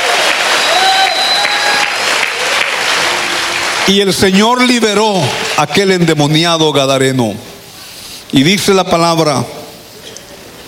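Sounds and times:
audience clapping: 0.0s - 6.6s
speech: 3.9s - 7.5s, 8.3s - 9.6s.

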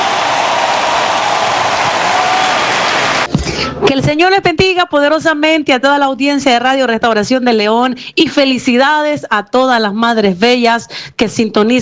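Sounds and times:
crowd shouting with joy: 0.0s - 3.3s
speech: 3.9s - 11.7s.

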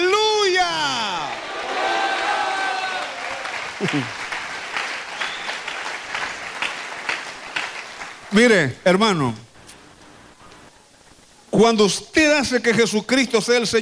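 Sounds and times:
audience applause: 0.9s - 8.5s
speech: 3.8s - 4.2s, 8.3s - 9.4s, 11.6s - 13.8s.

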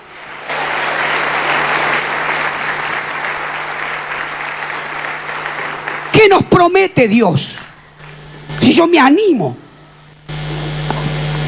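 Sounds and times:
audience applause: 0.0s - 6.9s
speech: 6.2s - 7.6s, 8.7s - 9.6s.

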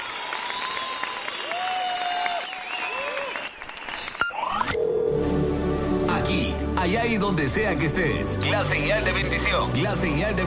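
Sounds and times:
audience applauding: 0.0s - 4.7s
sustained tonal music: 4.8s - 10.4s
speech: 6.9s - 10.4s.

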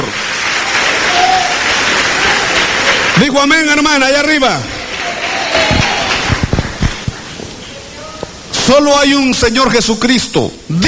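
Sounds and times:
audience applause: 0.0s - 8.4s
speech: 3.2s - 4.7s, 8.7s - 10.8s.

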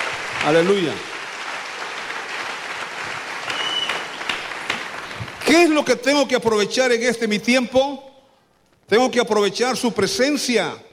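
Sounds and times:
audience applause: 0.0s - 5.8s
speech: 0.4s - 1.1s, 5.5s - 8.1s, 8.9s - 10.9s.

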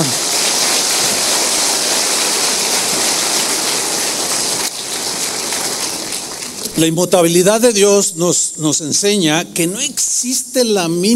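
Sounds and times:
audience applause: 0.0s - 6.8s
speech: 6.8s - 11.1s.

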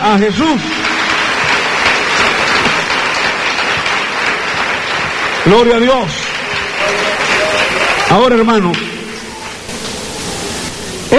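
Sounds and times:
audience applause: 0.0s - 11.1s
speech: 0.1s - 0.8s, 5.4s - 6.2s, 8.1s - 8.9s.

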